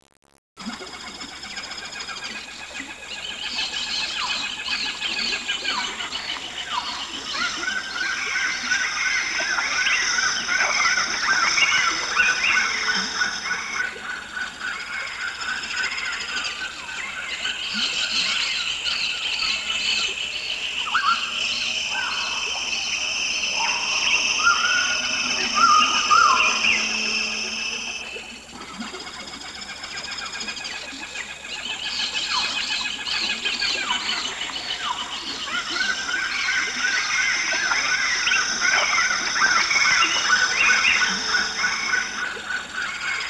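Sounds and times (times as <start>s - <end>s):
forest ambience at midday: 0.6s - 43.2s.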